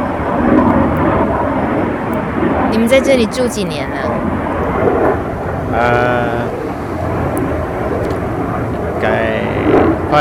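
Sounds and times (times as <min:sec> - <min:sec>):
airplane passing overhead: 0:00.0 - 0:10.1
speech: 0:02.7 - 0:04.3, 0:05.8 - 0:06.2
person murmuring: 0:05.7 - 0:06.5.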